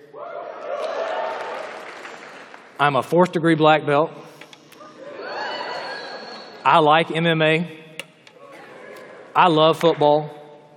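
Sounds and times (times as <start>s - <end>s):
audience applause: 0.7s - 2.8s
speech: 2.8s - 4.2s, 6.6s - 7.8s, 9.4s - 10.4s.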